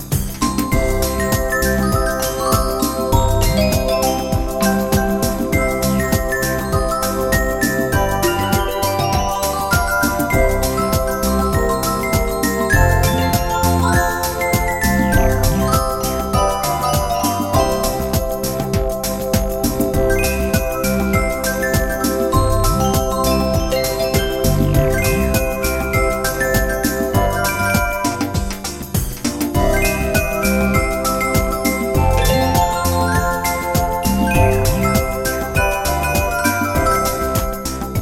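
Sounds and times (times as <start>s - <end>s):
pop reggae music: 0.0s - 37.9s.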